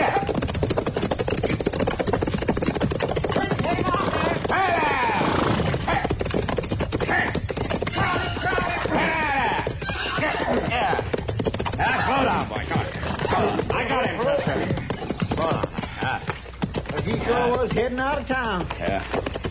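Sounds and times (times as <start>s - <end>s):
runaway horse galloping along a street: 0.0s - 19.4s
horse whinny: 3.7s - 6.2s, 7.0s - 16.3s.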